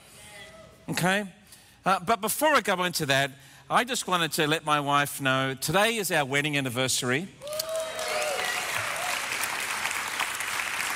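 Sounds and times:
speech: 0.9s - 7.6s
audience applause for a wedding anniversary: 7.8s - 10.9s.

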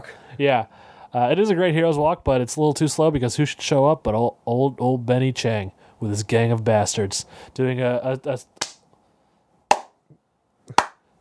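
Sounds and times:
speech: 0.0s - 8.6s
sarcastic slow hand claps: 8.6s - 8.8s, 9.7s - 10.0s, 10.7s - 11.0s.

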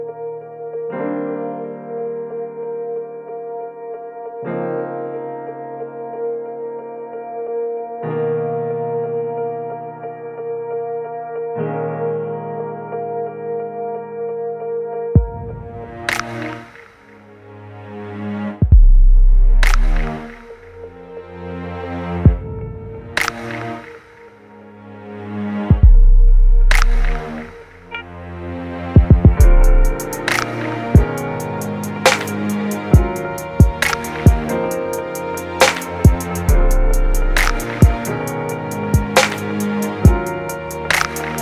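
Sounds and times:
jazz hop music: 18.7s - 21.1s, 25.7s - 28.2s, 29.0s - 41.3s.

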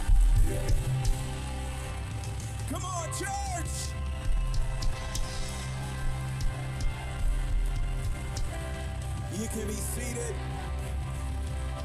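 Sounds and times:
audience applause: 0.0s - 11.8s
speech: 9.5s - 10.6s.

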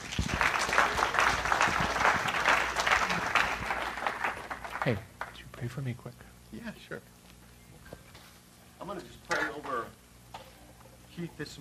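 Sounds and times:
audience applause: 0.0s - 5.4s
speech: 4.8s - 7.2s, 8.8s - 10.0s, 11.2s - 11.5s.

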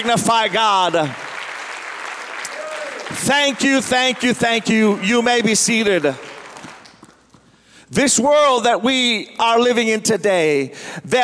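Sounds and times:
speech: 0.0s - 1.2s, 3.1s - 6.3s, 7.9s - 11.2s
large crowd applauding: 0.0s - 7.4s.

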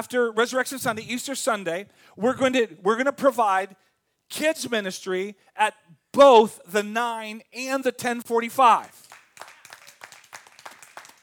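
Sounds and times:
speech: 0.0s - 9.0s
audience clapping: 8.8s - 11.2s.

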